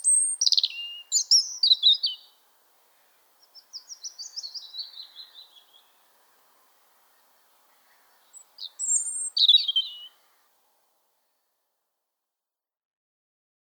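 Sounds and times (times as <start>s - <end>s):
European robin singing: 0.0s - 10.5s.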